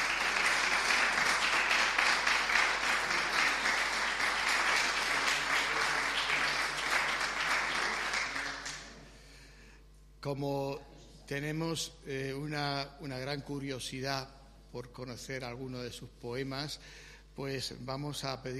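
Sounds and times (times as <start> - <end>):
audience applause for the winning poet: 0.0 - 9.0
speech: 10.2 - 18.5.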